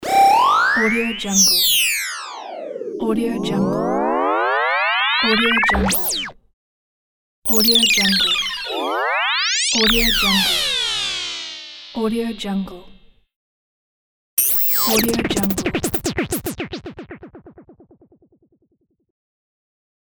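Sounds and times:
high tech space sounds: 0.0s - 6.1s, 8.1s - 12.3s, 14.8s - 17.8s.

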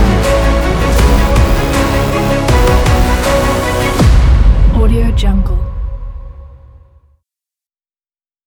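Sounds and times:
epic action sport rock adventure music: 0.0s - 6.4s.

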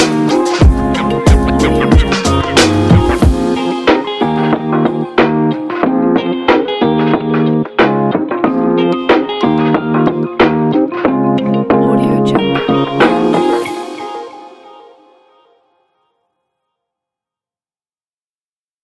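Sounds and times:
urban beat: 0.0s - 14.9s.

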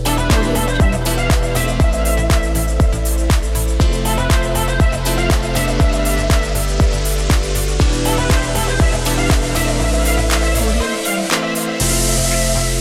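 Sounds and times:
upbeat house music: 0.0s - 12.8s.

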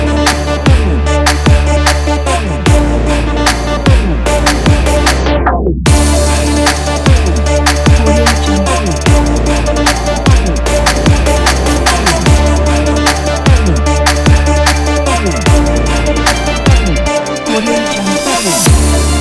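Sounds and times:
epic sport trap music: 0.0s - 19.1s.

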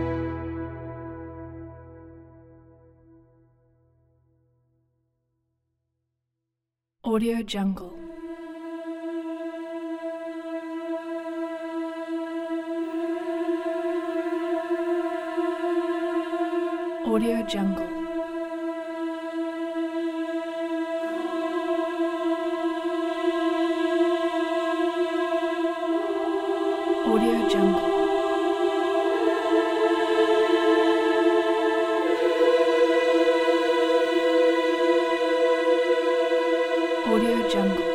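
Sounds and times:
dark fantasy ambience: 0.0s - 3.0s, 8.0s - 37.9s.

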